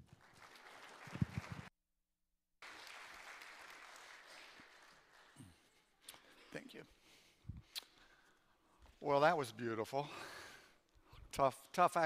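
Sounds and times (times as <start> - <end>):
faint applause from a church congregation greeting a guest speaker: 0.1 - 1.7, 2.6 - 5.5
speech: 9.0 - 10.4, 11.4 - 12.0.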